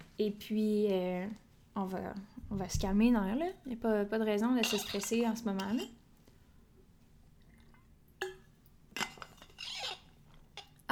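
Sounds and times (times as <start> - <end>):
speech: 0.2 - 6.0
small glass of water clinking: 4.6 - 6.0, 8.2 - 10.8.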